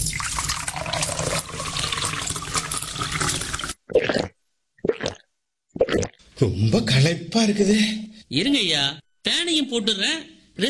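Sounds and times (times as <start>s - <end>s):
cold spiced buttermilk neer mor being poured: 0.0s - 6.2s
speech: 6.4s - 10.6s.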